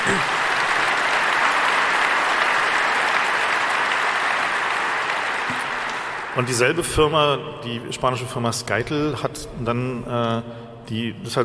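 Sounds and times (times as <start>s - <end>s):
audience applause: 0.0s - 7.0s
speech: 6.4s - 11.4s.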